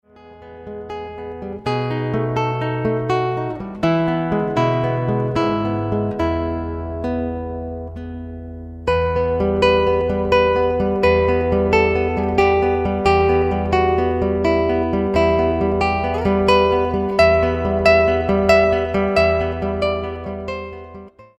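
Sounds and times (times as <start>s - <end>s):
romantic guitar music: 0.0s - 21.3s.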